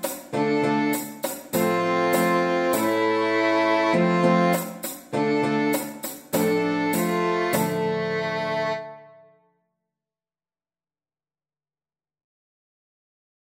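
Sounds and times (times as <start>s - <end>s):
Old English dance tune: 0.0s - 9.0s.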